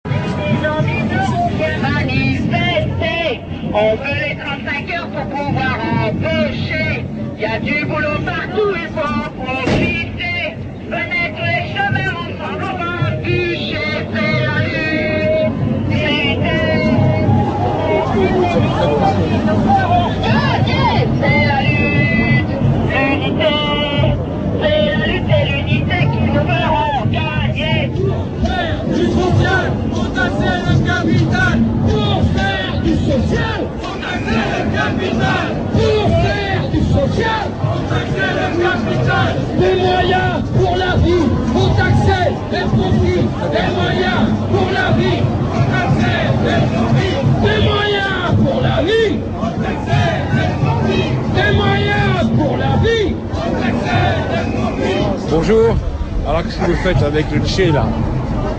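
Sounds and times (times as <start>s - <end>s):
anti-precarity demonstration ambience: 0.0s - 58.5s.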